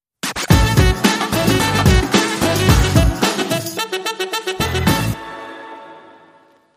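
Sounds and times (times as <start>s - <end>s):
saxophone: 0.5s - 6.6s.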